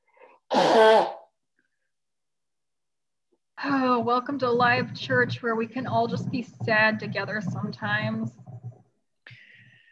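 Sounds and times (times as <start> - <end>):
person blowing their nose: 0.5 - 1.3
speech: 4.1 - 8.4.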